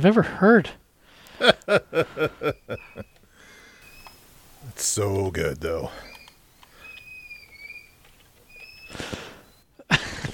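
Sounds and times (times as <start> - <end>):
speech: 0.0 - 0.8, 1.4 - 3.2, 4.6 - 6.1
laughter: 1.3 - 3.2, 9.8 - 10.3
child squeaking: 6.2 - 9.0.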